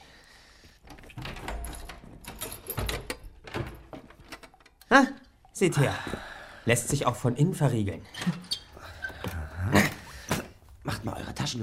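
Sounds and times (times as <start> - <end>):
badly hung cave door creaking, rattling and clunking open: 0.7 - 5.0, 7.9 - 10.6
speech: 4.9 - 8.4.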